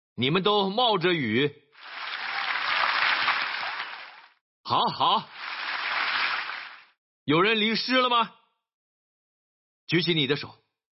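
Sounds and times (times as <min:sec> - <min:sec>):
speech: 0:00.2 - 0:01.6, 0:04.7 - 0:05.4, 0:07.2 - 0:08.4, 0:09.9 - 0:10.6
audience applauding loudly: 0:01.8 - 0:04.4, 0:05.3 - 0:06.9.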